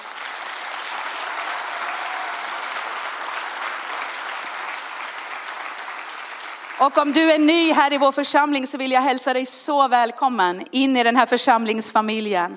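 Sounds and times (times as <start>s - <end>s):
audience applause: 0.0s - 7.5s
speech: 6.8s - 12.5s.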